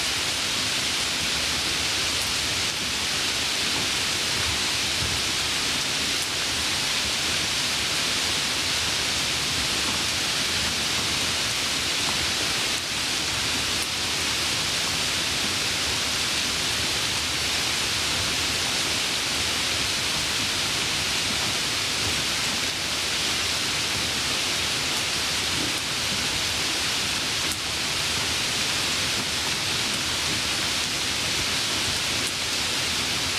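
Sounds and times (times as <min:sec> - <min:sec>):
light rain: 0:00.0 - 0:33.3.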